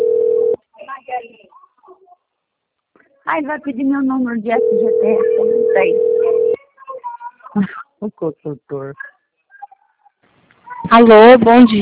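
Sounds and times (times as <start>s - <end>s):
telephone ringing tone on a business call: 0.0s - 0.6s, 4.5s - 6.6s
speech: 3.3s - 6.1s, 7.6s - 9.2s, 10.9s - 11.8s.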